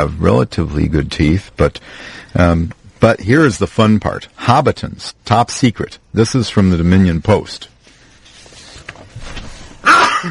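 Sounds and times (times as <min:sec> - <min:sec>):
speech: 0:00.0 - 0:07.7, 0:09.8 - 0:10.2
quiet shuffling: 0:07.3 - 0:09.8
sneeze: 0:09.8 - 0:10.2.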